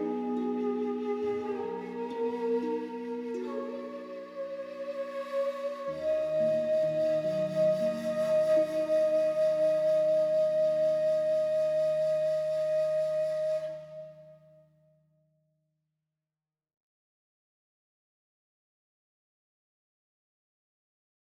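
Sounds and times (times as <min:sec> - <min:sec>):
shakuhachi: 0:00.0 - 0:14.6.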